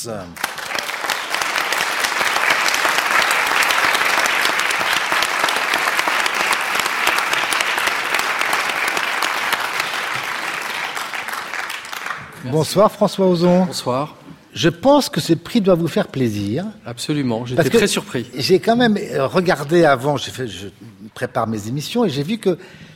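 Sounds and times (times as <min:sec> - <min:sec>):
speech: 0:00.0 - 0:00.5, 0:12.4 - 0:22.9
audience applause: 0:00.4 - 0:12.6.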